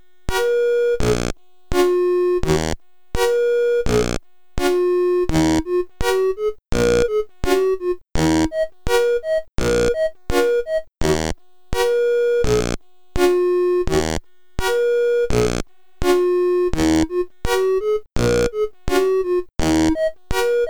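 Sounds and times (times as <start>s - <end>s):
SID chip stereo music: 0.4s - 1.1s, 1.9s - 2.6s, 3.2s - 10.9s, 11.8s - 12.6s, 13.3s - 14.1s, 14.7s - 20.6s.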